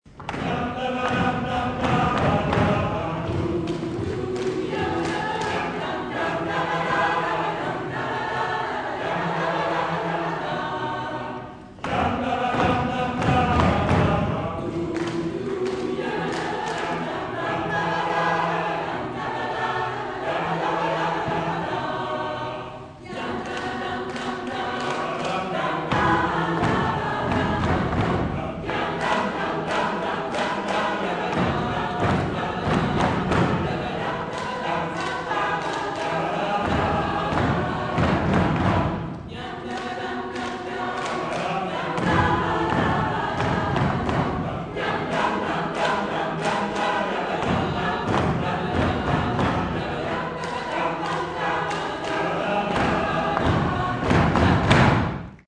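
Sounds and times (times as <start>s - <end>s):
a cappella singing of an intrada: 0.1s - 55.4s.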